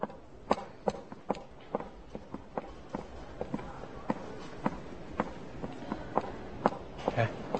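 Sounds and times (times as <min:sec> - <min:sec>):
footsteps of someone walking away: 0:00.0 - 0:07.5.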